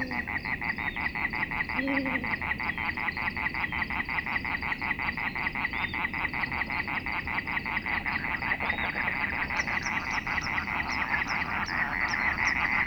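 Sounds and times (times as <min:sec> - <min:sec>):
chorus of Dhofar toads: 0:00.0 - 0:12.8
Arabian eagle owl hooting, presumed male: 0:08.1 - 0:12.8.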